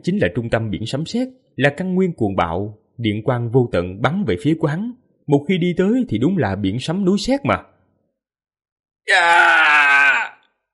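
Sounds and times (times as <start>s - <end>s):
speech: 0.0s - 7.7s, 9.0s - 10.0s
man screaming in agony: 9.1s - 10.5s.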